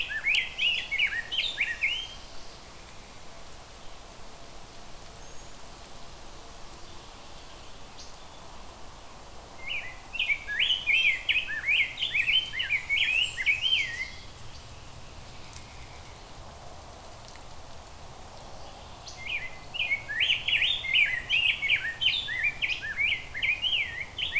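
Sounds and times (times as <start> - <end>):
rose-breasted grosbeak singing: 0.0 - 2.6, 9.6 - 16.2, 19.0 - 24.3.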